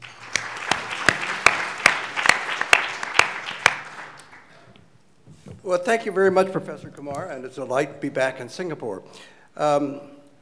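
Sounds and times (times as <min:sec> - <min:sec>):
scattered conference audience claps in Singapore: 0:00.0 - 0:04.7
speech: 0:05.7 - 0:10.2.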